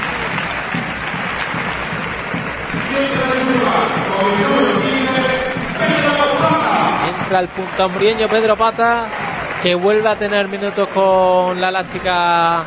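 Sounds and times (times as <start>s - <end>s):
football stadium crowd applauding a substitute coming on: 0.0s - 12.6s
speech: 3.0s - 4.9s, 7.3s - 12.6s.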